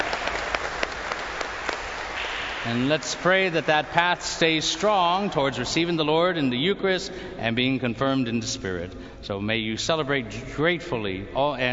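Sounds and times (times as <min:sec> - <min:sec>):
church congregation applauding new members during a service: 0:00.0 - 0:05.9
speech: 0:02.6 - 0:11.7.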